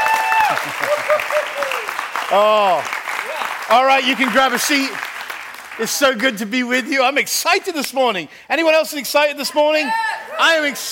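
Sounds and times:
people calling out and whooping: 0.0s - 3.5s
audience applauding: 0.0s - 6.6s
speech: 0.6s - 1.6s, 2.3s - 5.1s, 5.8s - 10.8s.

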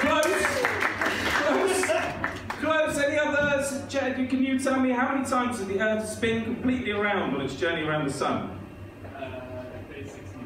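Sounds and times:
small group clapping: 0.0s - 2.8s
speech: 3.9s - 8.5s.

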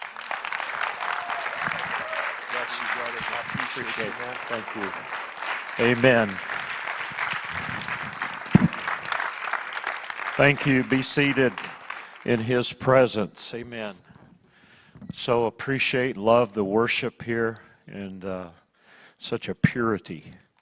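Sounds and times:
audience applause: 0.0s - 12.6s
speech: 2.7s - 5.2s, 5.8s - 6.5s, 10.4s - 14.1s, 15.2s - 18.6s, 19.2s - 20.4s.

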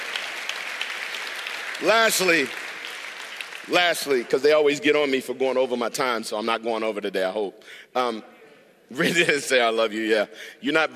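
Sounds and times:
audience hand clapping: 0.0s - 4.7s
speech: 1.8s - 2.6s, 3.7s - 8.3s, 8.9s - 10.9s.

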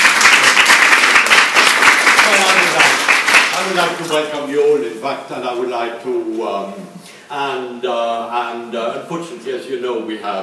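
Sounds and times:
conference audience applause welcoming a speaker: 0.0s - 4.2s
speech: 3.7s - 10.4s.

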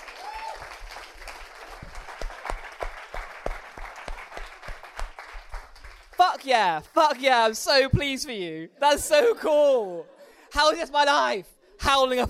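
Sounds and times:
audience applause: 0.0s - 6.2s
speech: 6.3s - 12.2s.

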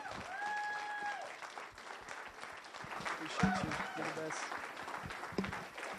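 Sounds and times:
church congregation applauding at a Sunday service: 0.0s - 5.9s
voices: 3.2s - 4.5s.

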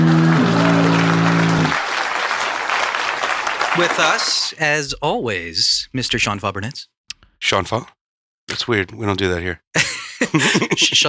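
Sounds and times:
applause: 0.0s - 4.6s
speech: 3.8s - 11.0s
laughter: 9.8s - 11.0s.

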